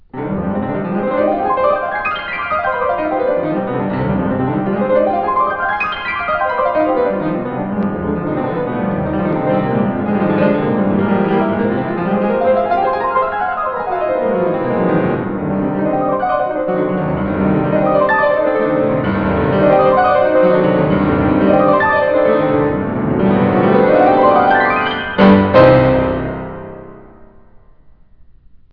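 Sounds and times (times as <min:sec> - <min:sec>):
piano playing: 0:00.0 - 0:27.6.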